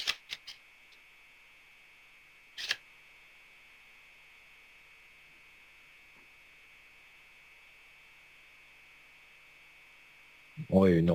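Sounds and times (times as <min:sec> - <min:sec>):
tarot cards snapping and riffling: 0:00.0 - 0:00.6, 0:02.6 - 0:02.8
faint steady tone: 0:00.6 - 0:11.1.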